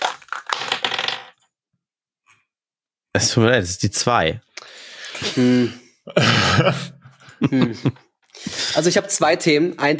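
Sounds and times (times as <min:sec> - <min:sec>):
dice rolling on a table: 0:00.0 - 0:01.5
speech: 0:03.1 - 0:04.5, 0:05.2 - 0:08.0, 0:08.8 - 0:09.9.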